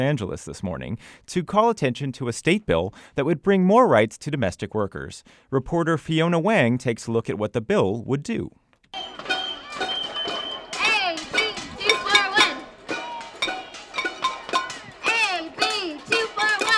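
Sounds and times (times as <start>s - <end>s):
speech: 0.0s - 9.3s
protesters banging pots and pans: 9.0s - 16.7s
protesters shouting and chanting: 9.0s - 16.7s.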